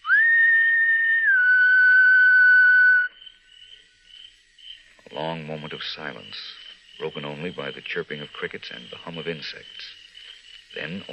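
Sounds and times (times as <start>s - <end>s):
soft human whistle: 0.0s - 3.2s
speech: 5.2s - 10.0s, 10.7s - 11.1s.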